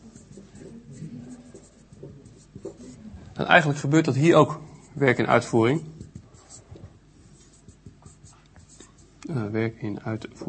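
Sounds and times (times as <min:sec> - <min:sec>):
fast handwriting with a pen: 0:00.1 - 0:03.0, 0:05.9 - 0:09.1
speech: 0:03.4 - 0:06.0, 0:09.7 - 0:10.4.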